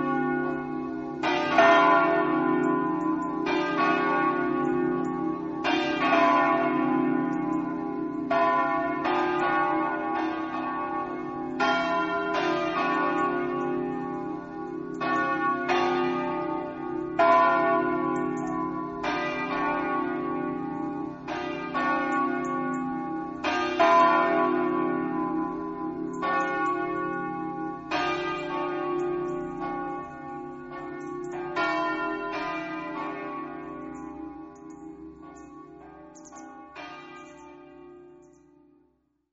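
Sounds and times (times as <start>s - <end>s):
church bells ringing in Buttrio: 0.0s - 39.0s.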